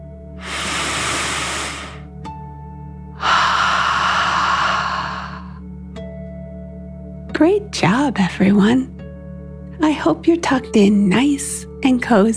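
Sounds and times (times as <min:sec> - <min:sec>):
deep breath in and out: 0:00.4 - 0:02.1, 0:03.2 - 0:05.6
speech: 0:07.4 - 0:08.9, 0:09.8 - 0:12.3.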